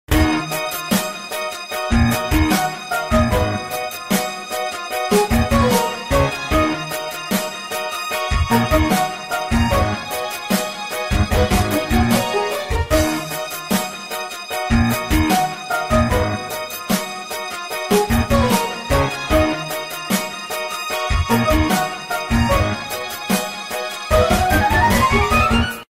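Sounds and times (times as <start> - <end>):
Motorola phone ringtone groove: 0.1 - 25.8.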